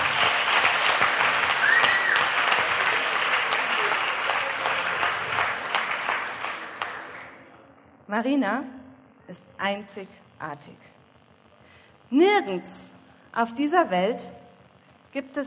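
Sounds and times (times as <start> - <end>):
audience applause: 0.0 - 7.5
speech: 8.2 - 10.9, 12.1 - 14.4, 15.1 - 15.4.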